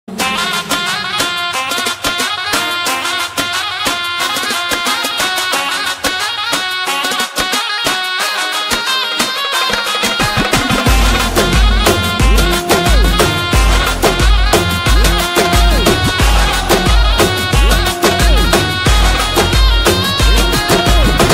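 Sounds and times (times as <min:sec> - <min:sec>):
instrumental title song music: 0:00.1 - 0:21.3.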